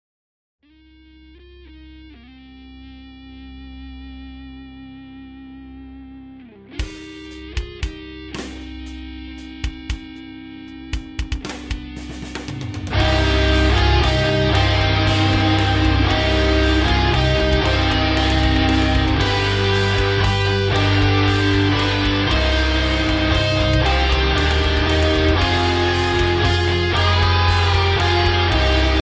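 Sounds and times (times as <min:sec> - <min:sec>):
rock ringtone: 0:06.8 - 0:29.0.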